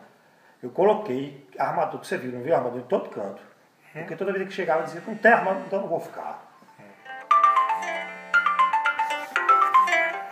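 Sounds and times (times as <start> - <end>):
speech: 0.6 - 6.4
phone ringtone playing a bright electronic melody: 6.6 - 10.2.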